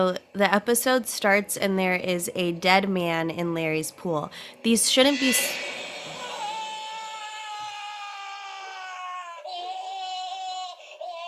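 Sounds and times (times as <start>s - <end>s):
speech: 0.0s - 5.8s
person screaming: 5.6s - 8.6s.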